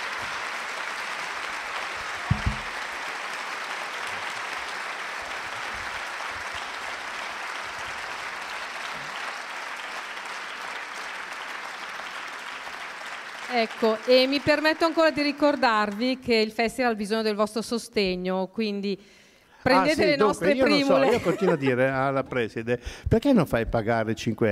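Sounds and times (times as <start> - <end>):
audience applause: 0.0 - 16.2, 19.7 - 21.6
speech: 13.5 - 24.4
laughter: 19.8 - 22.2.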